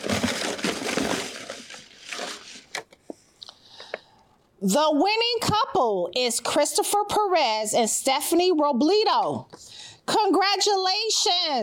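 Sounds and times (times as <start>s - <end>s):
folded paper slips mixed in a box: 0.0s - 2.8s
speech: 4.6s - 11.6s.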